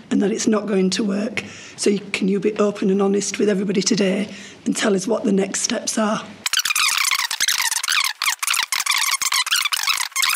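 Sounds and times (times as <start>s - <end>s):
speech: 0.2s - 6.4s
fast-forwarded video audio from an edited political interview clip: 6.4s - 10.3s.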